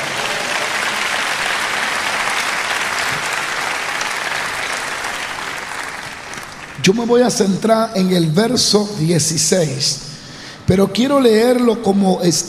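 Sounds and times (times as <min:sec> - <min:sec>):
audience applauding: 0:00.0 - 0:06.9
speech: 0:06.8 - 0:10.1, 0:10.7 - 0:12.4.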